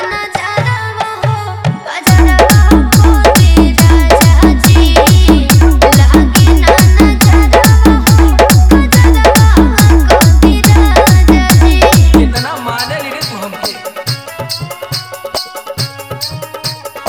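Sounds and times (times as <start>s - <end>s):
hard vibration mix: 2.1s - 13.4s.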